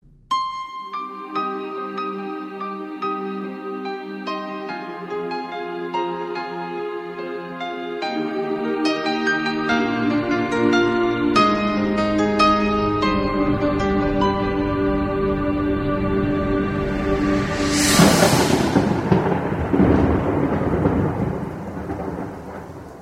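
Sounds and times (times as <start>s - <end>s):
beautiful music: 0.0s - 22.2s.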